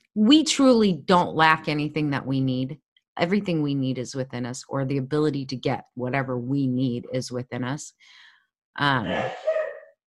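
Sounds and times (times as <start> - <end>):
speech: 0.2 - 8.2, 8.8 - 9.5
sneeze: 9.1 - 9.9.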